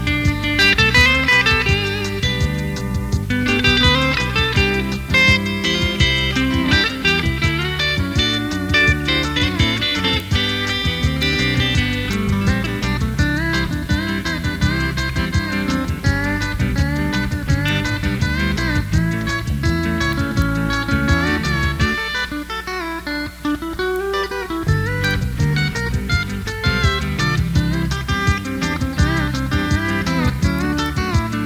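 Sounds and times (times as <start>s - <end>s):
steel guitar: 0.0s - 31.4s.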